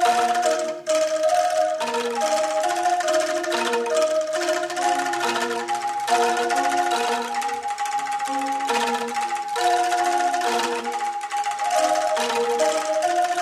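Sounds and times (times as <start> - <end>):
angklung percussion: 0.0 - 13.4.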